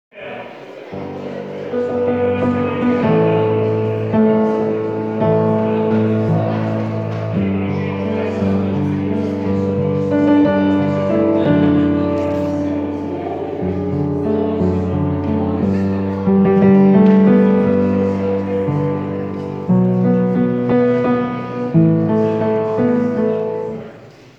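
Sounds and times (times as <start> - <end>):
tenor singing: 0.4 - 24.3.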